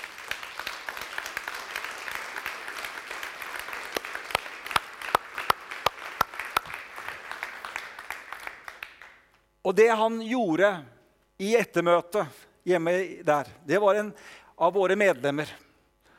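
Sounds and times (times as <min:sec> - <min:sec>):
audience applause: 0:00.0 - 0:09.2
speech: 0:09.7 - 0:15.6.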